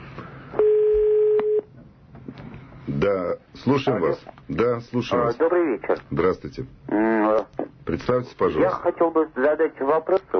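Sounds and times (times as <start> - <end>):
telephone line tone as a listener's call connects on radio: 0.6 - 1.7
speech: 3.0 - 10.3.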